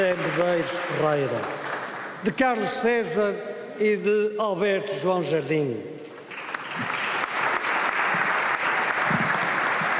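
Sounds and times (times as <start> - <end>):
applause in parliament chamber: 0.0 - 2.4, 6.2 - 9.9
speech: 0.0 - 6.0.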